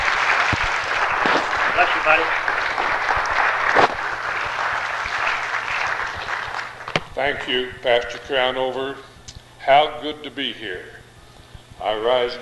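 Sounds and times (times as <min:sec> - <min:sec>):
audience applause: 0:00.0 - 0:07.2
speech: 0:01.8 - 0:02.9, 0:07.2 - 0:11.0, 0:11.8 - 0:12.4.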